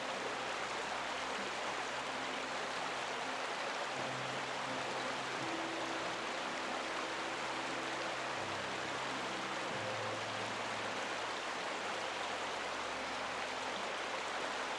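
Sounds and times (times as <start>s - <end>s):
rushing stream: 0.0s - 14.7s
calming piano lullaby: 3.2s - 11.4s.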